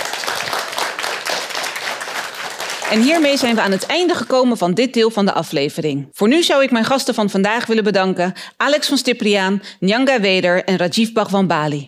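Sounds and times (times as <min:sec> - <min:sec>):
audience applause: 0:00.0 - 0:04.2
speech: 0:02.9 - 0:11.8.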